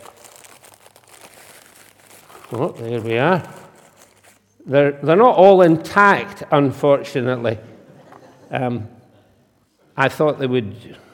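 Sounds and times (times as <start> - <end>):
plastic packaging crinkling as it is opened with scissors: 0.0 - 4.6
speech: 2.5 - 3.6, 4.7 - 7.7, 8.5 - 9.0, 10.0 - 11.0.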